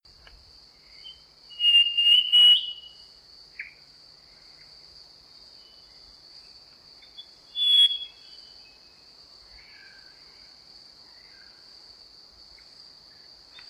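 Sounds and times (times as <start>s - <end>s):
Black-chinned robin sustained pulsing high whistle: 1.6s - 3.0s, 7.6s - 8.3s.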